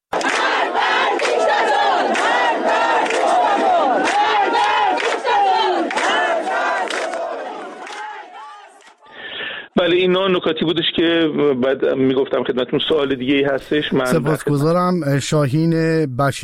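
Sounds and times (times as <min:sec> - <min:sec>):
large crowd chanting protest slogans in unison: 0:00.1 - 0:09.2
speech: 0:09.8 - 0:16.4.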